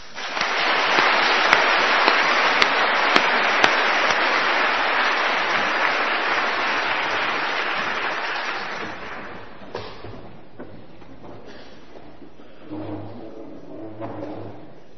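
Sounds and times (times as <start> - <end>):
crowd applauding: 0.0 - 9.7.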